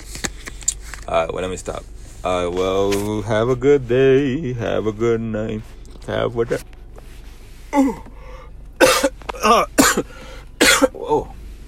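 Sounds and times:
speech: 0:01.1 - 0:06.7, 0:07.7 - 0:08.1, 0:09.4 - 0:10.2, 0:11.1 - 0:11.3
person coughing, almost choking while yawning: 0:07.8 - 0:08.1, 0:08.8 - 0:11.3.

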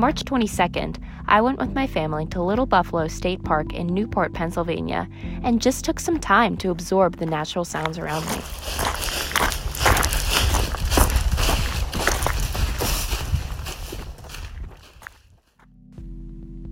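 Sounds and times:
speech: 0:00.0 - 0:09.1
footsteps crunching gravel and leaves: 0:07.2 - 0:15.6.

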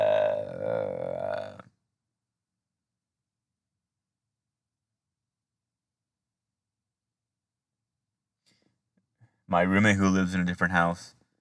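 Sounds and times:
person yawning: 0:00.0 - 0:01.7
speech: 0:09.5 - 0:11.2.

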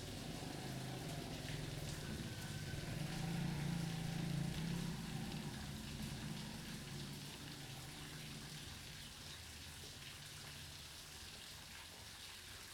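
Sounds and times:
steady rain in a Costa Rica rain forest: 0:00.0 - 0:11.2.

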